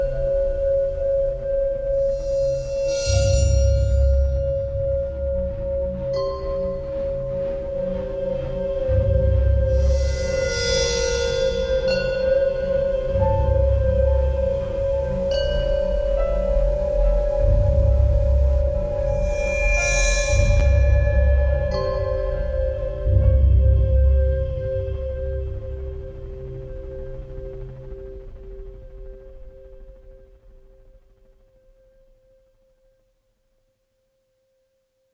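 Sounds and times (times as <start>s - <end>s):
ambient Tibetan singing bowls: 0.0s - 8.3s, 9.6s - 25.4s.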